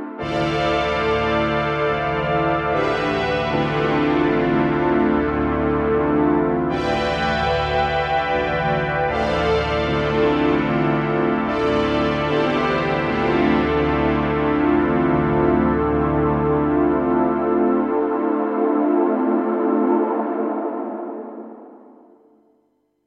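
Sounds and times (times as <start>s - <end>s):
interval synth pad: 0.2s - 21.9s.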